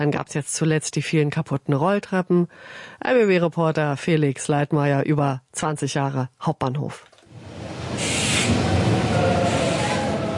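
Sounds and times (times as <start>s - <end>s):
speech: 0.0s - 7.2s, 8.0s - 8.7s
ICE high-speed train from Leipzig slowly pulling into platform: 7.3s - 10.3s.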